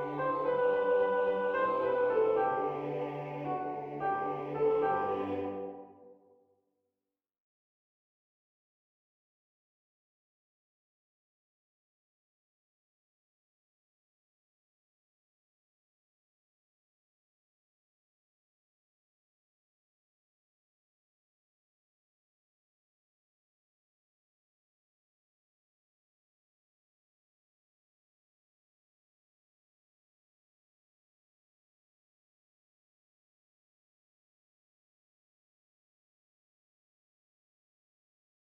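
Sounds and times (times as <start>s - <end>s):
soprano section singing tutti: 0.0s - 6.0s.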